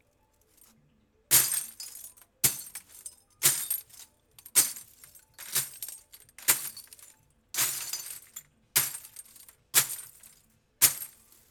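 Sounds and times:
glass being crushed: 1.3s - 11.4s.

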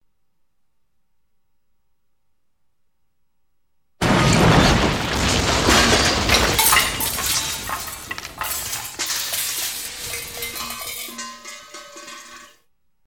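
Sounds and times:
crash impacts: 4.0s - 12.6s
paint can clanking on metal: 5.7s - 12.6s.

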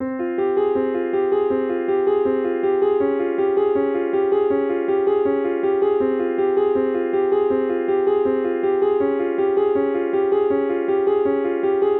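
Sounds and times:
piano loop: 0.0s - 11.9s.

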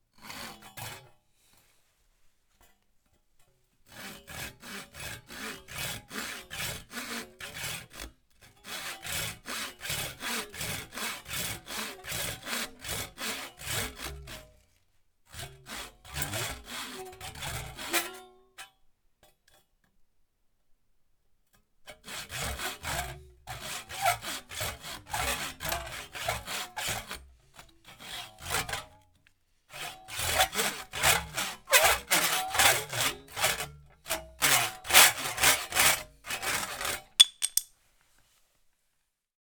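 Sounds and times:
sawing wood: 3.9s - 14.5s, 15.3s - 17.9s, 22.0s - 28.9s, 29.7s - 37.6s.

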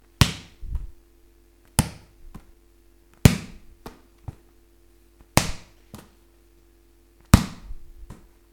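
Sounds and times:
ball being hit: 0.2s - 0.6s, 3.2s - 4.4s, 5.3s - 6.1s, 7.3s - 8.3s.

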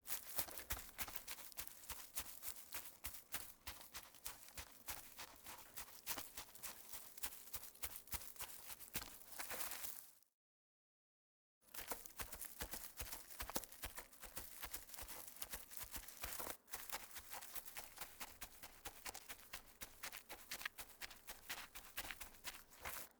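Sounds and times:
animal footsteps: 0.0s - 10.1s, 11.7s - 23.1s.

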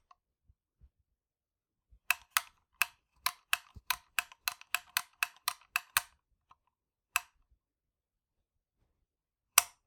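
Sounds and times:
light switch switched on and off: 2.1s - 6.1s, 9.6s - 9.8s.

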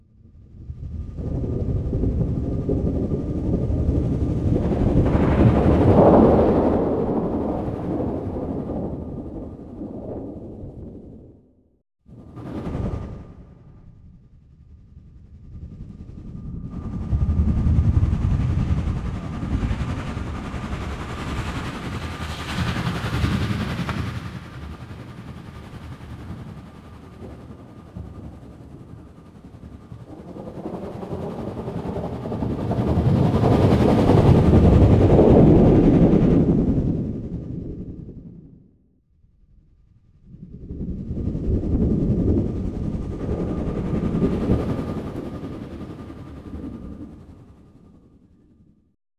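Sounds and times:
storm: 0.2s - 38.7s, 39.7s - 48.8s.

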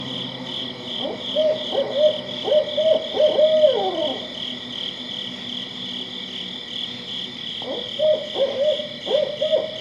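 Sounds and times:
barred owl hooting: 1.0s - 4.6s, 7.6s - 9.7s.

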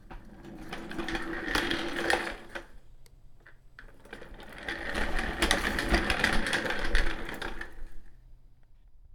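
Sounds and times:
desk chair rumbling: 0.0s - 2.7s, 3.9s - 8.0s.

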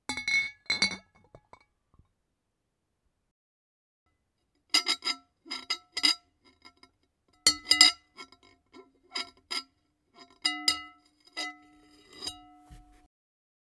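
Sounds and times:
glass jar and lid: 0.1s - 1.6s, 4.8s - 13.0s.

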